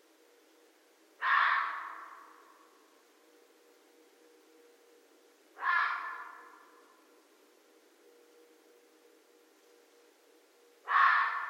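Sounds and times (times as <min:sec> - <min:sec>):
red fox screaming: 0:01.2 - 0:02.4, 0:05.6 - 0:06.7, 0:10.9 - 0:11.4.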